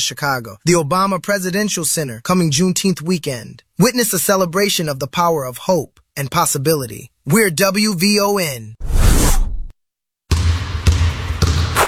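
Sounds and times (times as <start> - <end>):
speech: 0.0 - 9.0
basketball bouncing on a floor at a Gun Violence Awareness Weekend event: 10.3 - 11.8.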